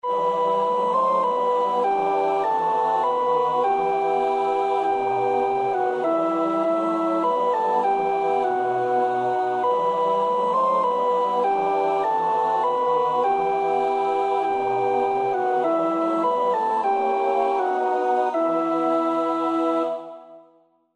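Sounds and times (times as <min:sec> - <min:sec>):
soprano singing: 0:00.0 - 0:20.5.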